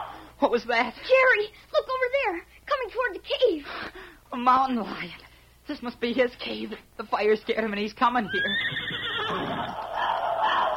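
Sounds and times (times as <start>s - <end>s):
speech: 0.4s - 9.8s
pony whinnying: 8.2s - 10.7s.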